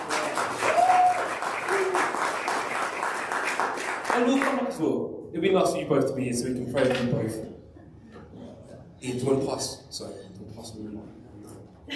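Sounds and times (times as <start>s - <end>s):
church audience clapping in a reverberant hall: 0.0s - 4.8s
whistle or cheer: 0.6s - 2.1s
speech: 4.2s - 7.6s, 9.0s - 11.2s.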